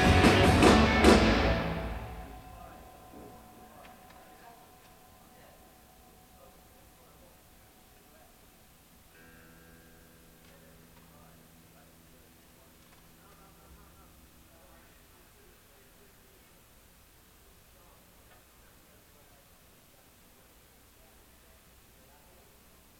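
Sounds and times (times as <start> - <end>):
soundcheck instrument tuning: 0.0 - 8.4.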